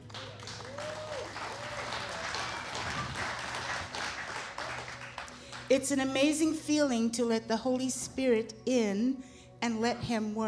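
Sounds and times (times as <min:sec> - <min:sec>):
audience applause: 0:00.0 - 0:05.7
speech: 0:05.7 - 0:10.4.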